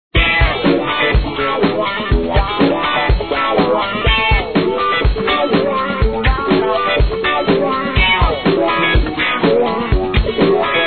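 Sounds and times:
Stratocaster guitar loop: 0.1s - 10.8s.

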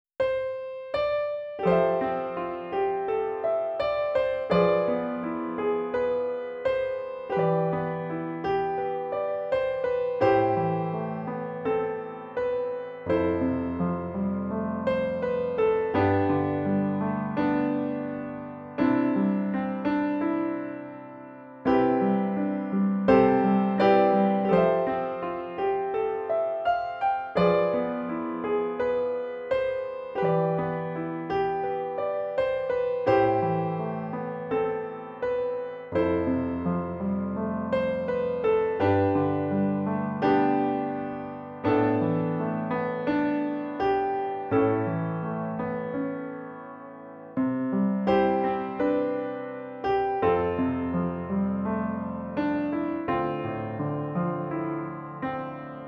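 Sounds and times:
piano: 0.0s - 55.8s.

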